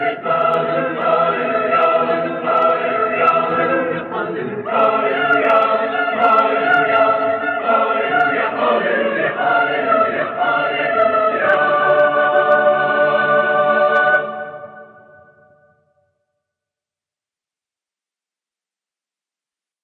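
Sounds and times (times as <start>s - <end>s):
eight-part choir singing: 0.0s - 15.6s.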